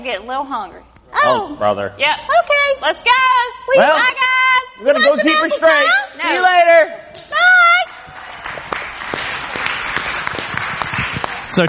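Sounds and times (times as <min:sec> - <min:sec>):
speech: 0:00.0 - 0:07.4
audience applauding: 0:07.6 - 0:11.6.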